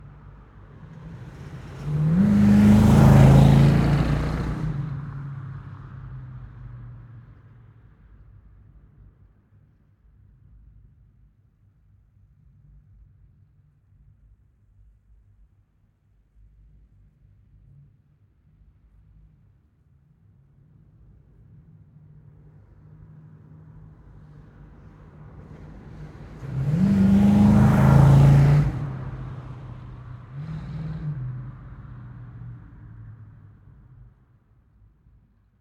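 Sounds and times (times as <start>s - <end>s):
1970 Ford Mustang Mach 1 V8 passing by: 0.2s - 6.5s, 23.7s - 34.2s
1970 Ford Mustang Mach 1 V8 fast start accelerating away: 0.8s - 5.9s, 25.5s - 34.0s
1970 Ford Mustang Mach 1 V8 engine revving: 1.0s - 4.8s, 26.4s - 29.6s.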